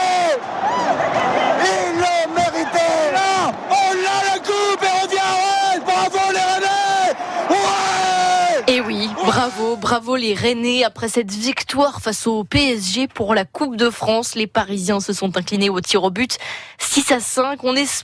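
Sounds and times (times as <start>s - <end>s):
big crowd cheering and singing in celebration: 0.0s - 9.8s
speech: 9.4s - 18.0s.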